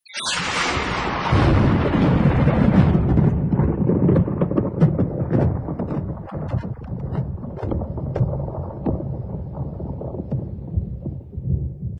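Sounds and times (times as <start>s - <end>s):
thunder: 0.3s - 11.9s.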